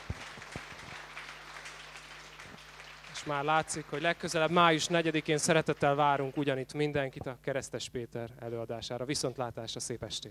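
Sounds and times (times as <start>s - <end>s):
audience applause after lecture: 0.0s - 6.4s
low constant hum: 0.0s - 10.3s
speech: 3.2s - 10.3s.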